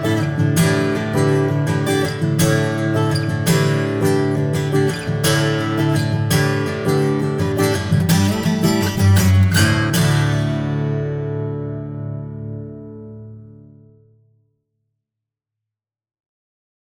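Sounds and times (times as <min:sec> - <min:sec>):
acoustic guitar: 0:00.0 - 0:14.2.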